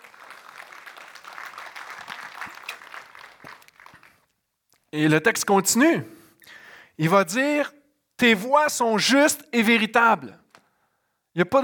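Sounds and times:
audience applause: 0:00.0 - 0:04.3
speech: 0:04.9 - 0:06.2, 0:07.0 - 0:10.4, 0:11.4 - 0:11.6.

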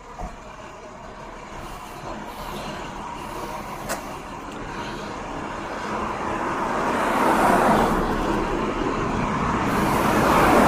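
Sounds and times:
idling diesel work truck engine: 0:00.0 - 0:10.6.

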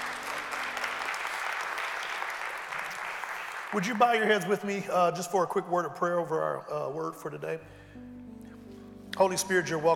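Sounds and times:
audience hand clapping praise: 0:00.0 - 0:04.5
speech: 0:03.7 - 0:08.2, 0:09.2 - 0:09.9.

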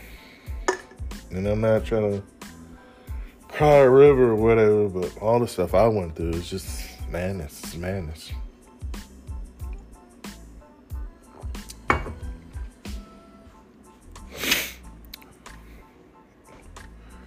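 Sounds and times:
speech: 0:01.3 - 0:02.4, 0:03.6 - 0:08.4
sniffling and snorting from a stuffy nose with a cold: 0:14.2 - 0:15.0.

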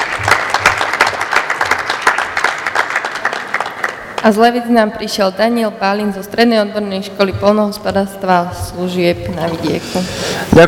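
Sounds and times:
audience applause: 0:00.0 - 0:04.2
speech: 0:04.2 - 0:10.6.

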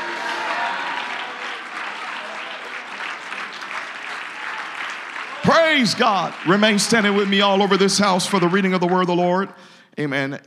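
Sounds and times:
audience shouting: 0:00.0 - 0:03.5, 0:04.2 - 0:08.7
audience clapping: 0:00.0 - 0:09.4
speech: 0:05.5 - 0:10.4.

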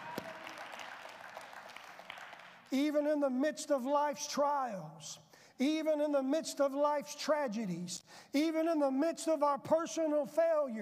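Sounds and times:
people clapping in praise of Jesus Christ: 0:00.0 - 0:02.8
speech: 0:02.7 - 0:10.7.

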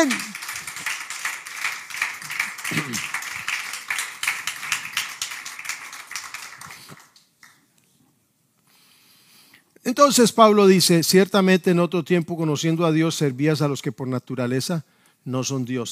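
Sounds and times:
audience clapping hands in praise: 0:00.0 - 0:07.7
speech: 0:09.9 - 0:15.9.

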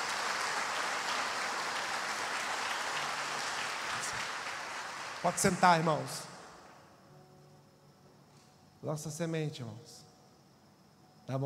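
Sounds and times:
audience applause: 0:00.0 - 0:06.4
speech: 0:05.2 - 0:06.3, 0:08.8 - 0:10.0.

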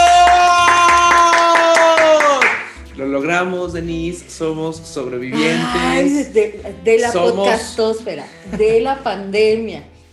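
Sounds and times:
rhythmic clapping: 0:00.0 - 0:03.0
speech: 0:03.2 - 0:09.9
sustained bright tone: 0:04.7 - 0:07.8.

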